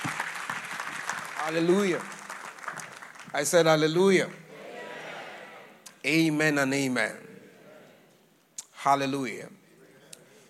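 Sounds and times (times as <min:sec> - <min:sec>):
audience clapping: 0:00.0 - 0:04.4
speech: 0:01.4 - 0:02.2, 0:03.3 - 0:04.4, 0:06.0 - 0:07.3, 0:08.8 - 0:09.6.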